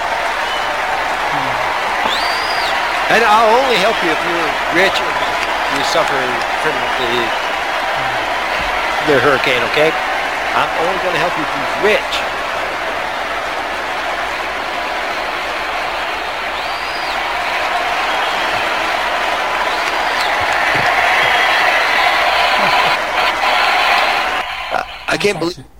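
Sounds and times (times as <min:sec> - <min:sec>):
crowd cheering and clapping: 0:00.0 - 0:25.5
laughter: 0:01.2 - 0:01.9, 0:03.1 - 0:12.6, 0:17.8 - 0:25.5
speech: 0:03.1 - 0:07.4, 0:09.0 - 0:12.3, 0:25.1 - 0:25.7.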